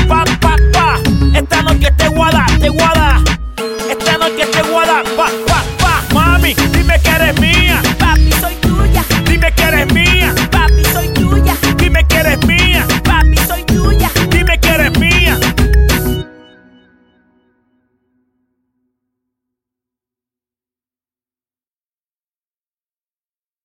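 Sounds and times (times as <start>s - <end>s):
full music loop at 95 BPM: 0.0s - 16.5s.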